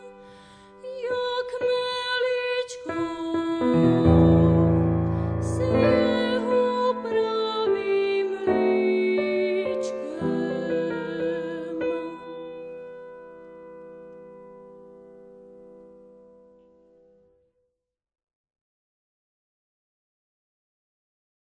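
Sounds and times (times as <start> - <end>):
person singing: 0.0 - 13.1
piano accompaniment: 0.0 - 17.0.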